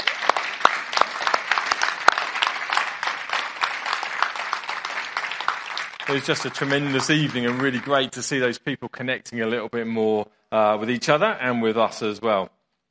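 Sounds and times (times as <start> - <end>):
audience applause: 0.0 - 8.4
speech: 6.1 - 12.6.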